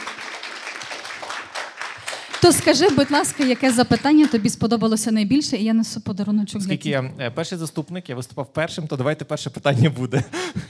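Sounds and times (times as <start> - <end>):
audience applause: 0.0 - 4.6
speech: 2.4 - 10.6.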